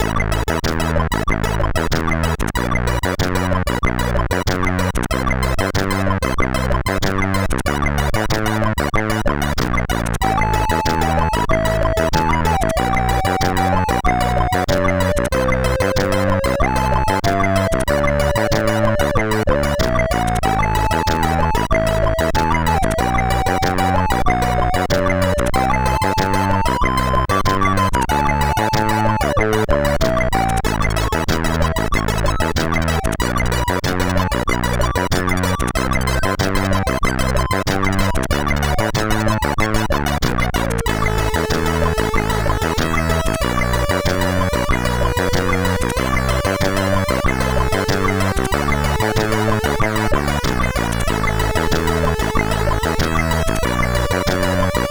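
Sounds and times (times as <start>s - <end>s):
bossa nova on CSG 8580R5 SID chip: 0.0s - 54.8s.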